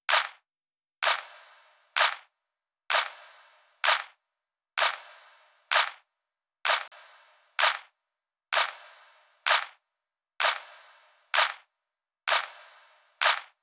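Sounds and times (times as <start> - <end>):
drum loop with claps: 0.0 - 0.4, 1.0 - 2.3, 2.9 - 4.2, 4.8 - 6.1, 6.7 - 9.8, 10.4 - 11.7, 12.3 - 13.6.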